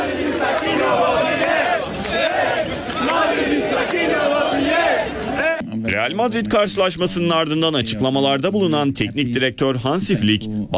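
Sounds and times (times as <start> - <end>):
Barcelona fans chanting and shouting in the streets celebrating a championship: 0.0 - 5.6
speech: 6.1 - 10.7.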